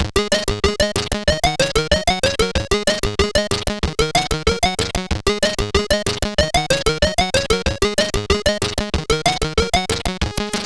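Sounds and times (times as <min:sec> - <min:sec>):
SID CSG8580R5 chip music: 0:00.2 - 0:10.5.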